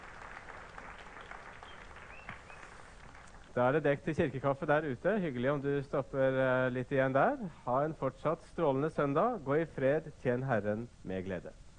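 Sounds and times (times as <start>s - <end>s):
audience applauding the organist: 0.0s - 3.6s
speech: 3.6s - 11.6s.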